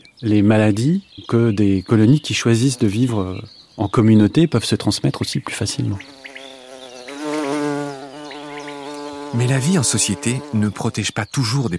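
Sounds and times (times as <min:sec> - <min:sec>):
speech: 0:00.2 - 0:06.2, 0:09.3 - 0:11.7
Bombus terrestris bumblebee buzzing: 0:02.6 - 0:03.2, 0:05.8 - 0:11.1.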